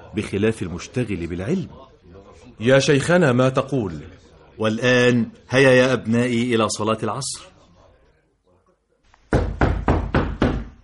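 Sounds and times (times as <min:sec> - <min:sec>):
speech: 0:00.2 - 0:01.9, 0:02.6 - 0:07.5
knocking on a door in a religious radio drama: 0:09.3 - 0:10.8.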